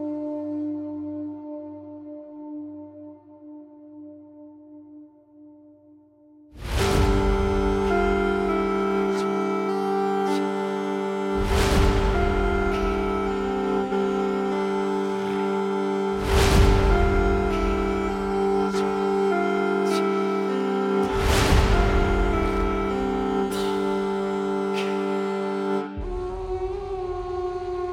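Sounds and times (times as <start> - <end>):
dark music: 6.6 - 27.9.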